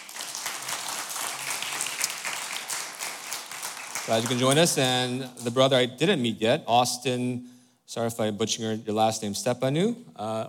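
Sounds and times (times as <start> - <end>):
church congregation applauding a first-time visitor: 0.0 - 5.5
speech: 4.1 - 10.4.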